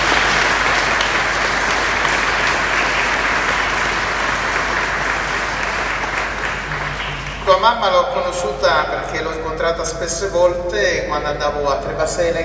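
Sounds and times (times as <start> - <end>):
audience applause: 0.0 - 7.7
speech: 7.6 - 12.4.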